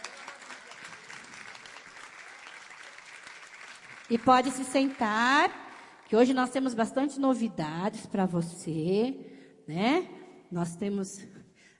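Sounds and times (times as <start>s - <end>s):
audience applause: 0.0s - 6.1s
speech: 4.1s - 11.4s.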